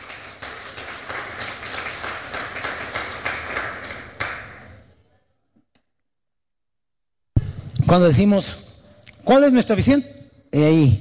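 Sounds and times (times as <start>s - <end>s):
audience applause: 0.0s - 4.6s
speech: 7.9s - 8.7s, 9.3s - 10.9s.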